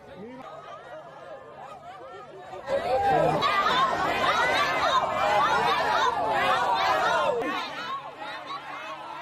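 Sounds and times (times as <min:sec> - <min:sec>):
crowd of villagers and schoolchildren protesting against an asphalt plant: 0:00.0 - 0:09.2
laughter: 0:00.2 - 0:09.0.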